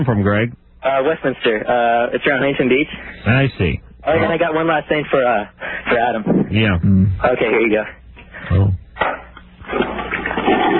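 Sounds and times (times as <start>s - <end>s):
speech: 0.0s - 8.8s
toilet flushing heard over a phone line: 9.6s - 10.7s.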